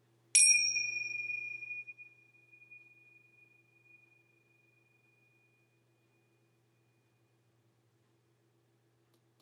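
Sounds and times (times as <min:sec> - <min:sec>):
bells ringing: 0:00.4 - 0:04.1.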